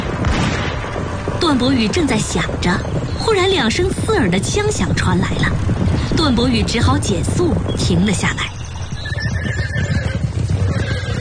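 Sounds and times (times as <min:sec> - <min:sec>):
rumble of hooves of a cavalry troop arriving on tall horses: 0:00.0 - 0:11.1
speech: 0:01.4 - 0:08.5
horse neighing: 0:09.0 - 0:11.1.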